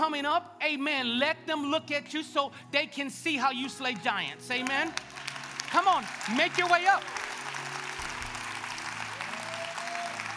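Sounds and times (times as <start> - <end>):
speech: 0.1 - 7.2
audience cheering and applauding: 4.9 - 10.3.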